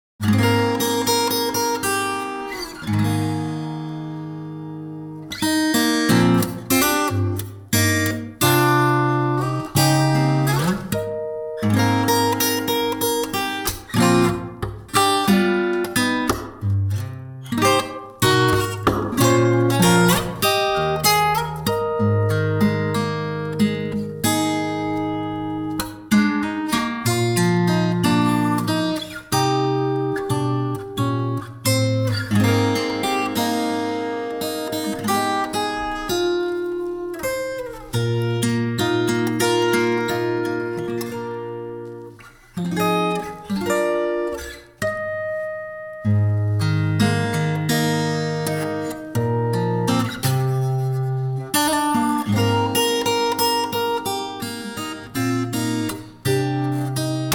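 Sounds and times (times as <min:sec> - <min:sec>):
acoustic music: 0:00.2 - 0:57.3.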